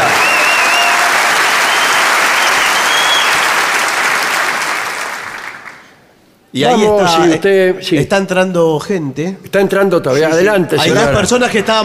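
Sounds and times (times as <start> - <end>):
whistles: 0.0 - 3.6
audience applause: 0.0 - 6.0
speech: 6.6 - 11.8.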